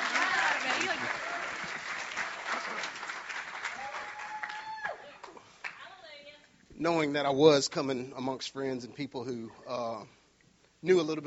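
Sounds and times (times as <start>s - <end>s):
crowd applauding: 0.0s - 5.8s
speech: 6.8s - 10.2s, 10.8s - 11.2s.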